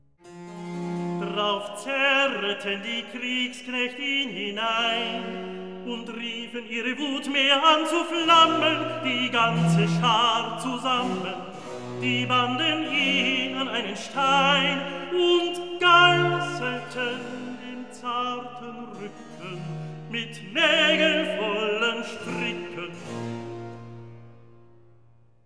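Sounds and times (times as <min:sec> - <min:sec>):
recitative singing: 0:01.2 - 0:23.4.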